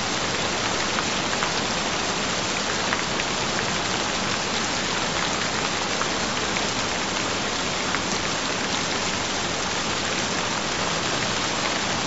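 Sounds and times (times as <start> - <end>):
gentle rain: 0.0 - 12.0.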